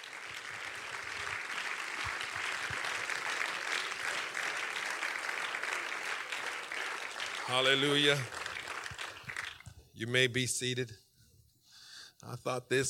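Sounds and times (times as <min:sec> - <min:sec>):
audience clapping: 0:00.0 - 0:09.8
speech: 0:07.5 - 0:08.4, 0:10.0 - 0:11.0, 0:12.3 - 0:12.8.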